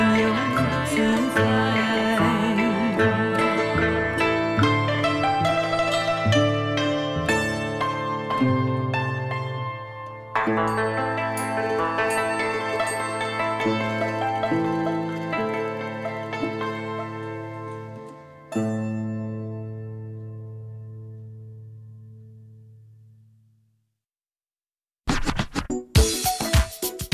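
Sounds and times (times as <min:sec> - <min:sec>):
traditional Chinese music: 0:00.0 - 0:20.2, 0:25.9 - 0:27.1.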